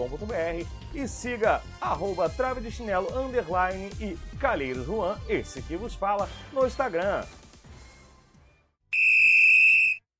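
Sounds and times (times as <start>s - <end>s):
speech: 0.0s - 7.4s
referee whistle blowing end of game: 8.9s - 10.0s.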